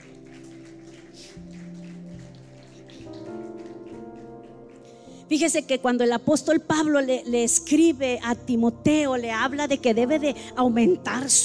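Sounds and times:
audience clapping: 0:00.0 - 0:05.2
speech: 0:05.3 - 0:11.4.

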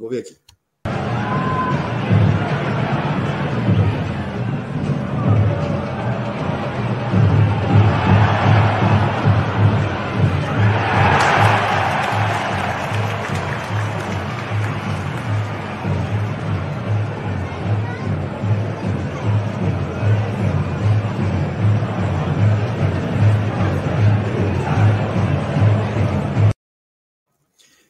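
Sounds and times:
speech: 0:00.0 - 0:00.5
large stadium crowd of football fans roaring and chanting: 0:00.9 - 0:26.6.

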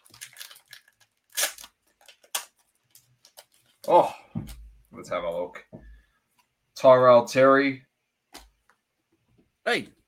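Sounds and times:
trading card pack being torn open: 0:00.0 - 0:03.9
speech: 0:03.9 - 0:05.7, 0:06.8 - 0:07.9, 0:09.7 - 0:10.0.

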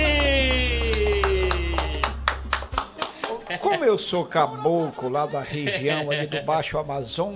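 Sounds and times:
applause: 0:00.1 - 0:03.7
laughter: 0:02.7 - 0:06.7
speech: 0:04.1 - 0:07.3.

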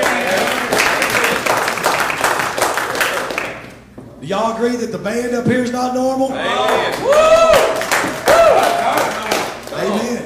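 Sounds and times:
audience clapping: 0:00.0 - 0:03.9, 0:06.5 - 0:10.2
speech: 0:04.3 - 0:07.5.

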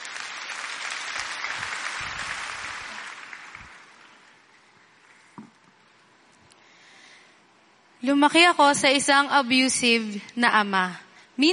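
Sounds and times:
applause at a church gathering: 0:00.0 - 0:04.7
speech: 0:08.0 - 0:11.5.

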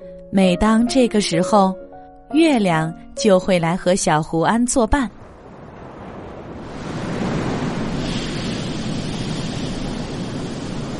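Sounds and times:
speech: 0:00.3 - 0:05.2
stormy ocean waves at sea on a windy night: 0:03.8 - 0:10.9
wind at sea: 0:04.8 - 0:10.9.

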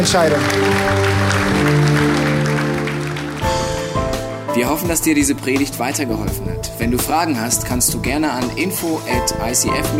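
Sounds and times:
speech: 0:00.0 - 0:01.8, 0:04.5 - 0:09.9
audience applause: 0:00.0 - 0:04.3
sustained keyboard chords: 0:00.0 - 0:09.9.

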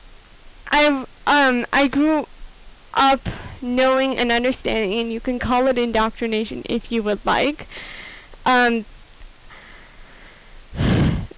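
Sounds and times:
speech: 0:00.8 - 0:02.3, 0:03.0 - 0:08.9
voiced gasp of a person catching their breath: 0:03.2 - 0:03.6, 0:07.7 - 0:08.3, 0:09.5 - 0:11.3
loud breathy exhale: 0:09.5 - 0:11.3.

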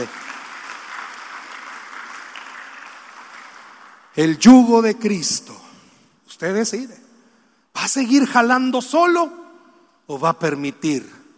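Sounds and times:
audience applause: 0:00.0 - 0:04.4
speech: 0:04.2 - 0:05.6, 0:06.3 - 0:07.1, 0:07.8 - 0:09.4, 0:10.1 - 0:11.2.

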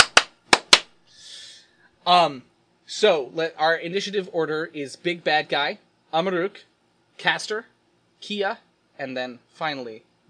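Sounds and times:
hand claps: 0:00.0 - 0:01.0
breathy hiss: 0:01.0 - 0:02.0
speech: 0:02.1 - 0:10.1.

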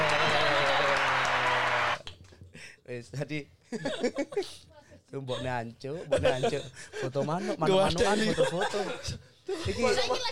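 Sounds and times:
applause: 0:00.0 - 0:02.3
speech: 0:02.9 - 0:10.3
laughter: 0:05.9 - 0:10.3.

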